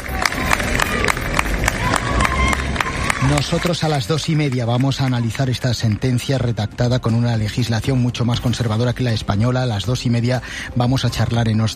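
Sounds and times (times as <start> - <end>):
crowd applauding outside courthouse: 0.0 - 7.3
speech: 3.3 - 11.7.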